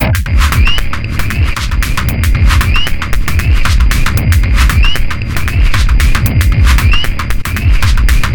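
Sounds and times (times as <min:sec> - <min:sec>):
115 BPM synth stab loop: 0:00.0 - 0:08.3.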